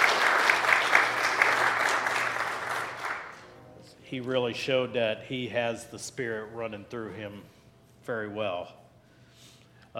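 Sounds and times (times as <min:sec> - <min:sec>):
round of applause: 0:00.0 - 0:03.4
speech: 0:04.1 - 0:08.8.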